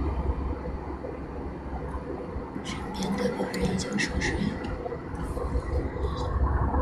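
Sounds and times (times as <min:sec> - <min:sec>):
airplane engine rumble in the cabin: 0:00.0 - 0:06.8
speech: 0:02.6 - 0:04.7
person whispering: 0:02.7 - 0:06.4.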